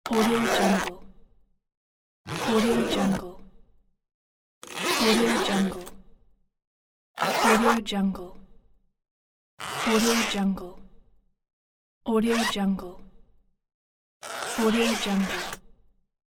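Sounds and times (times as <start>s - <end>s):
zipper: 0.0s - 1.1s, 2.2s - 3.3s, 4.6s - 6.0s, 7.2s - 7.9s, 9.6s - 10.5s, 12.2s - 12.6s, 14.2s - 15.7s.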